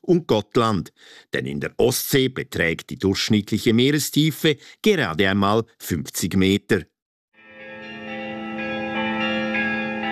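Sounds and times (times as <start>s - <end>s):
speech: 0.1s - 6.9s
church bells ringing from cathedral in Visby: 7.4s - 10.1s.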